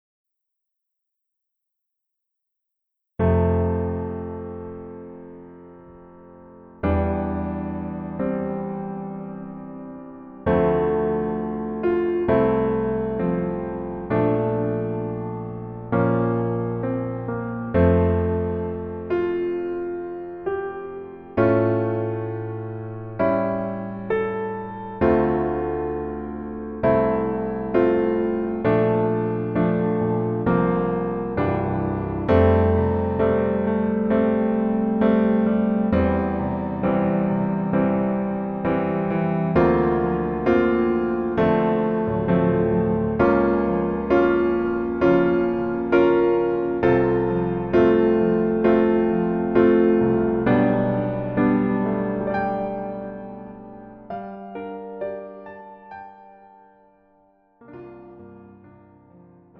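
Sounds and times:
piano version lowered by one key: 3.2 - 59.5.

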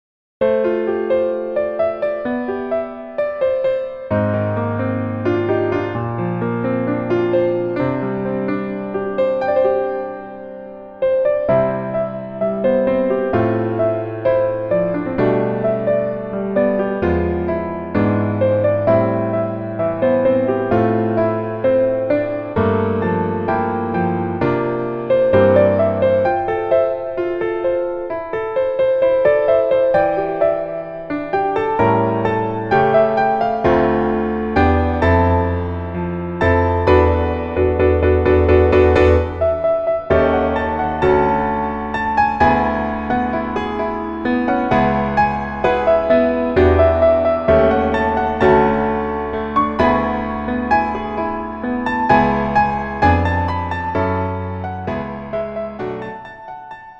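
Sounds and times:
piano melody backing track: 0.4 - 56.9.

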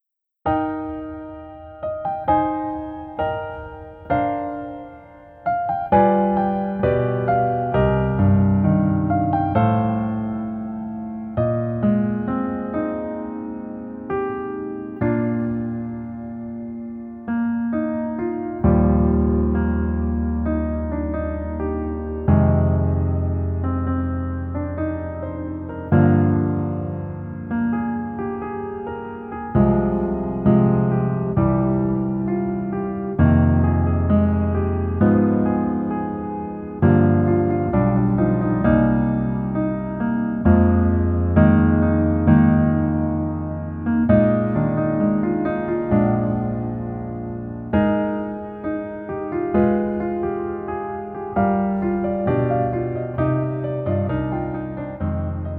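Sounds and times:
piano melody backing track lowered one key: 0.0 - 55.5.

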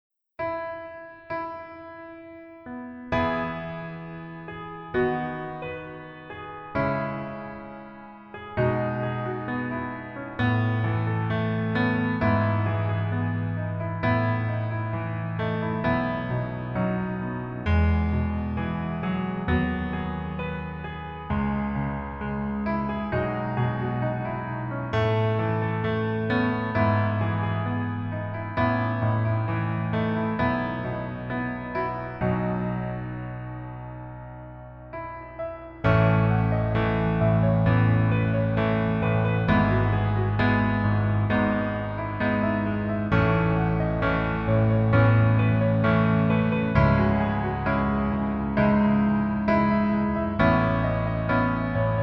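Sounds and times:
piano melody backing track: 0.4 - 52.0.

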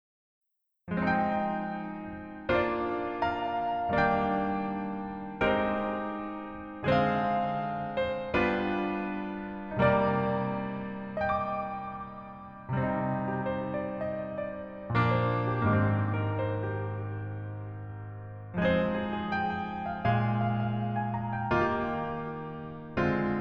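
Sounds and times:
piano melody backing track: 0.9 - 23.4.

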